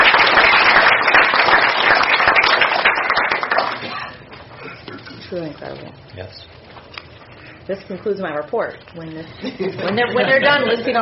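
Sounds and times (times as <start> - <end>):
audience applause for honored students: 0.0 - 4.2
speech: 5.4 - 6.6, 7.7 - 11.0
laughter: 9.3 - 11.0.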